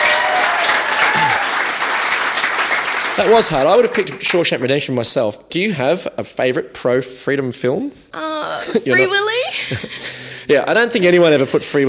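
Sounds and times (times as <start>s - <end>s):
crowd applause: 0.0s - 4.8s
speech: 3.2s - 11.8s.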